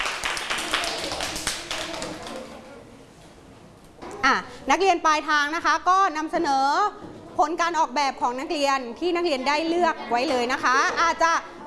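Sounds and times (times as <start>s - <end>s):
class clapping for group five: 0.0s - 2.5s
speech: 4.3s - 11.5s.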